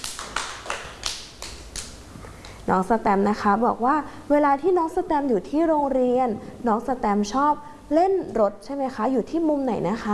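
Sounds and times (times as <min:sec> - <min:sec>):
rhythmic clapping in a preschool class: 0:00.0 - 0:02.6
speech: 0:02.7 - 0:10.1.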